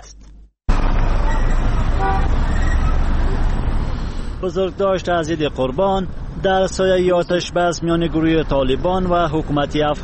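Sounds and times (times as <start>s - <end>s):
busy city street traffic rumbling: 0.2s - 10.0s
car horn toots: 1.2s - 2.9s
speech: 4.4s - 10.0s.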